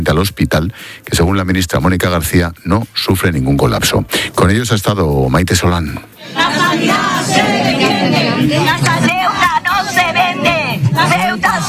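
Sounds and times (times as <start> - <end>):
speech: 0.0 - 10.0
protest crowd shouting and chanting outside hospital: 6.2 - 11.6.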